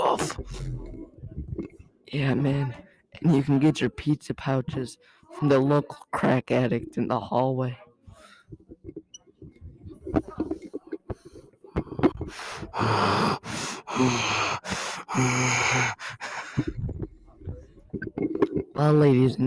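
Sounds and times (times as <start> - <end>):
speech: 2.1 - 7.8, 12.3 - 16.8, 18.8 - 19.4
heavy exaggerated breathing: 8.1 - 8.8, 9.9 - 17.9.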